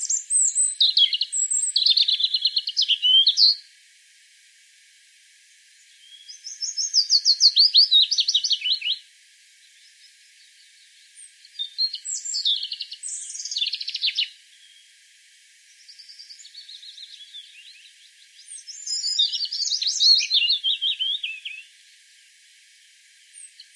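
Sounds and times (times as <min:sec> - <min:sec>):
European robin song: 0:00.0 - 0:03.6, 0:05.8 - 0:09.0, 0:10.8 - 0:14.8, 0:15.8 - 0:21.7, 0:23.4 - 0:23.7.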